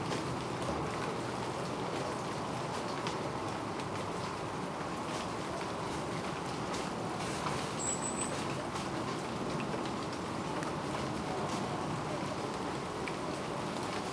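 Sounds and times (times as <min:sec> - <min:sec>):
rain: 0:00.0 - 0:14.1.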